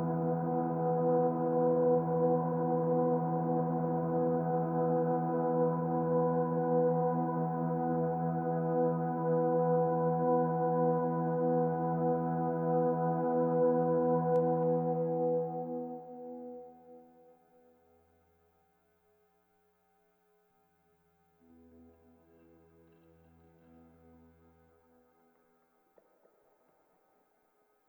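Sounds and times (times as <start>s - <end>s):
DI line guitar: 0.0s - 17.0s.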